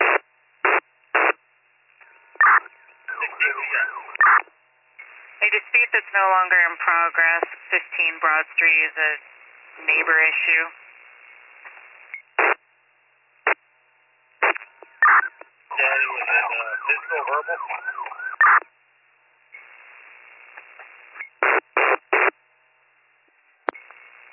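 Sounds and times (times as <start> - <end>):
radio static: 0.0 - 1.4, 2.4 - 12.6, 14.4 - 18.6, 19.6 - 22.4
speech: 5.5 - 10.8, 17.4 - 18.7.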